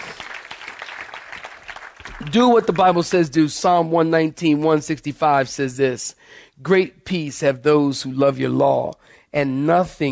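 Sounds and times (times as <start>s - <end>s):
audience clapping hands: 0.0s - 3.3s
speech: 2.2s - 10.1s.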